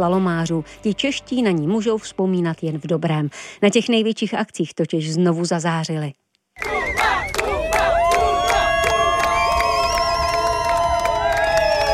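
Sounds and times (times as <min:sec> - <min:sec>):
speech: 0:00.0 - 0:06.8
teammates cheering and shouting names: 0:06.6 - 0:11.9.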